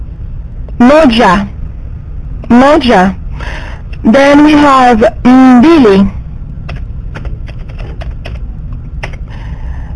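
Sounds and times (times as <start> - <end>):
steady low hum: 0.0 - 9.9
speech: 0.8 - 1.5, 2.4 - 6.2
typing on a computer keyboard into a text chat: 6.6 - 9.3.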